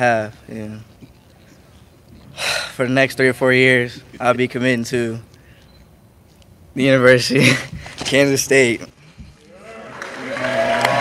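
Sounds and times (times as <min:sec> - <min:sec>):
speech: 0:00.0 - 0:00.9, 0:02.4 - 0:05.3, 0:06.8 - 0:09.0
audience clapping: 0:09.6 - 0:10.9.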